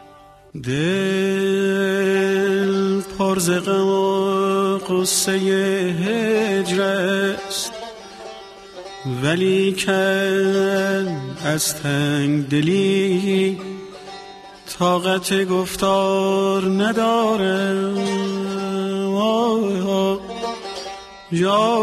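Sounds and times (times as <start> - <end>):
person singing: 0.0 - 8.2, 9.0 - 21.8
saz playing: 5.7 - 12.2, 12.8 - 15.2, 17.5 - 21.8.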